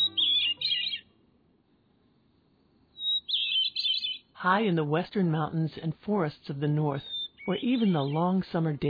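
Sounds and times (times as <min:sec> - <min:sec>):
bird singing: 0:00.0 - 0:01.2, 0:02.9 - 0:04.8, 0:06.5 - 0:08.8
speech: 0:04.4 - 0:08.8.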